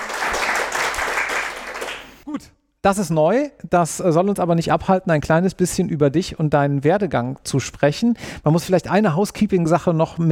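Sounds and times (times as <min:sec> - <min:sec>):
live audience applause: 0:00.0 - 0:02.2
speech: 0:02.4 - 0:10.2.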